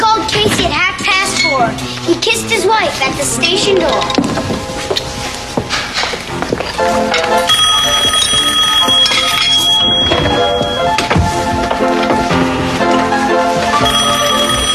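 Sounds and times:
busy clattering background: 0.0s - 14.7s
speech: 1.6s - 4.5s, 6.8s - 7.2s
telephone ringing: 7.4s - 11.1s, 13.8s - 14.7s.

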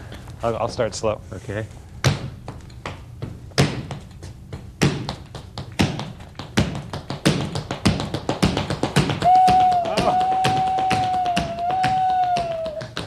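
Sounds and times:
speech: 0.4s - 1.8s
tap dancing steps imitating a train: 2.0s - 13.0s
wavering whistle-like tone: 9.2s - 12.9s.

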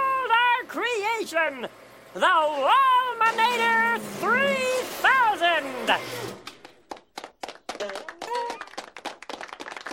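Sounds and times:
speech: 0.7s - 6.5s
people clapping: 6.5s - 9.9s.

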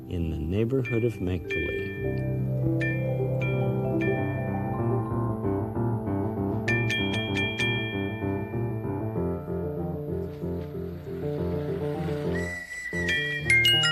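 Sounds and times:
gentle instrumental music: 0.0s - 13.9s
speech: 0.1s - 2.8s
toy trolley passing with whistle: 11.8s - 13.9s.

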